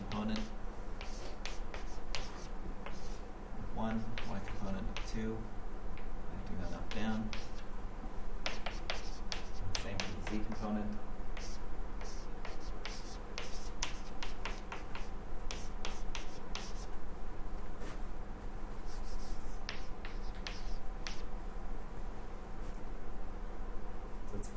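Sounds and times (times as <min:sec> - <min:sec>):
writing out equations on a board: 0:00.0 - 0:03.2, 0:04.0 - 0:05.2, 0:06.0 - 0:07.6, 0:08.4 - 0:10.8, 0:11.4 - 0:16.9, 0:18.9 - 0:21.3
steady hiss: 0:00.0 - 0:24.5
speech: 0:10.3 - 0:11.1.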